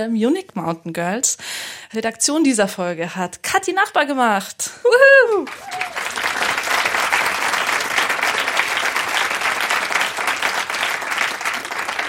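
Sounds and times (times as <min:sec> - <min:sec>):
speech: 0:00.0 - 0:06.0
live audience clapping: 0:05.4 - 0:12.0.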